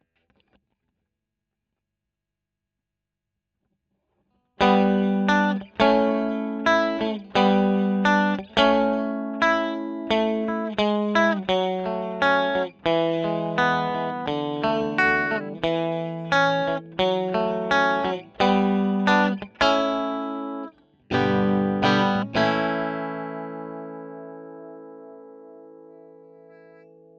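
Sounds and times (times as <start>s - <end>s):
electric guitar recorded with Royer microphone: 4.6s - 27.1s.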